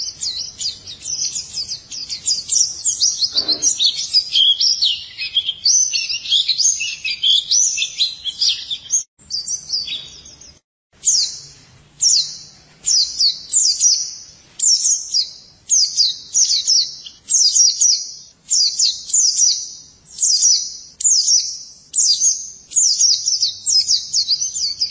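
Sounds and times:
white-eye song: 0.0s - 24.8s.

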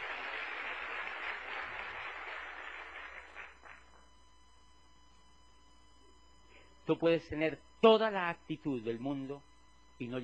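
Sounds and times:
audience applause: 0.0s - 3.9s
speech: 6.9s - 10.2s.

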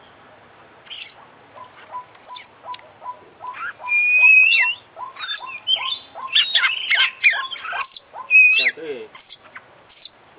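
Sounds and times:
Oriental magpie-robin song: 0.8s - 10.2s.

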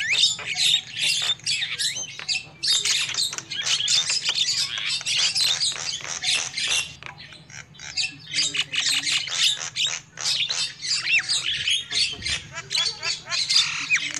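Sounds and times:
lovebird chatter: 0.0s - 14.1s.

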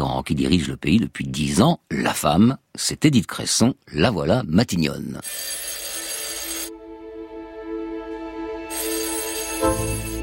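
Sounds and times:
speech: 0.2s - 5.8s
telephone ringing: 5.2s - 6.7s, 8.7s - 10.2s.

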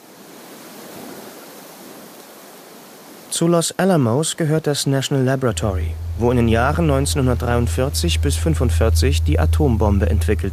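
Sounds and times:
speech: 3.4s - 10.5s
wind whipping: 5.3s - 10.5s.

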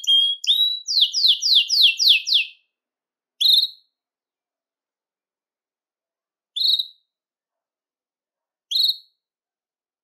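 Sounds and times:
Belgian canary whistled call: 0.0s - 2.6s, 6.5s - 7.1s, 8.7s - 9.2s.

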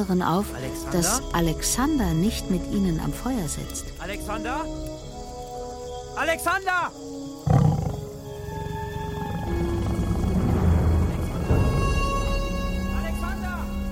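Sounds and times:
speech: 0.0s - 5.1s, 6.2s - 7.6s
steady sustained tones: 0.0s - 13.9s
big spotted cat roaring: 7.4s - 11.5s.

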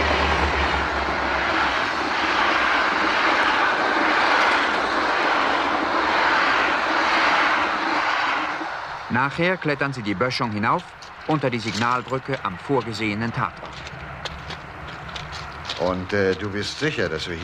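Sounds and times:
train speeding past: 0.0s - 17.4s
speech: 9.2s - 14.0s, 15.8s - 17.4s.

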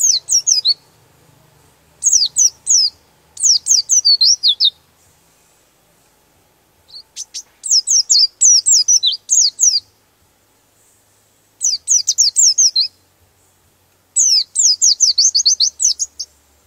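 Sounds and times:
white-eye twittering high thin downslurred notes: 0.0s - 1.0s, 2.0s - 4.8s, 6.9s - 10.0s, 11.6s - 13.0s, 14.2s - 16.4s.

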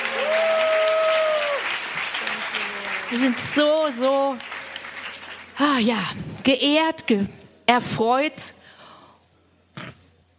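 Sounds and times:
audience clapping at a church conference greeting a guest: 0.0s - 6.0s
speech: 3.1s - 4.6s, 5.6s - 8.6s.

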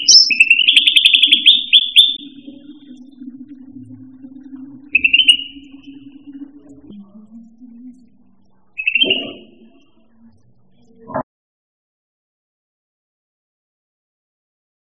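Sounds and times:
bird song with short bright high whistled and chirping notes: 0.0s - 10.4s.

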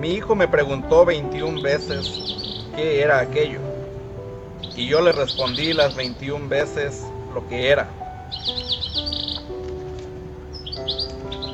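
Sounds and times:
speech: 0.0s - 3.7s, 4.8s - 8.6s
small bird chirping: 1.4s - 3.0s, 4.6s - 6.3s, 8.0s - 9.7s, 10.5s - 11.5s.

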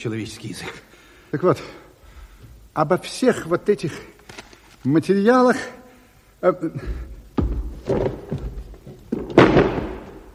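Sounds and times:
speech: 0.0s - 1.8s, 2.8s - 4.1s, 4.8s - 5.8s, 6.4s - 7.1s, 7.9s - 8.4s
scuffling: 6.8s - 10.3s
thuds of a person falling: 7.4s - 10.3s.

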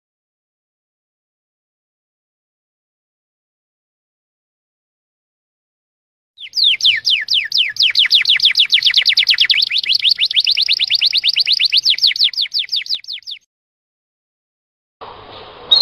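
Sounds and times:
champion canary singing: 6.4s - 13.4s.

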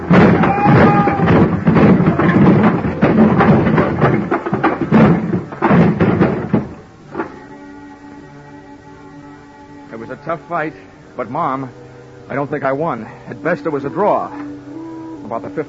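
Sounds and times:
dolly slamming into a stack of wooden boxes: 0.0s - 7.8s
speech: 10.3s - 14.5s, 15.3s - 15.6s.

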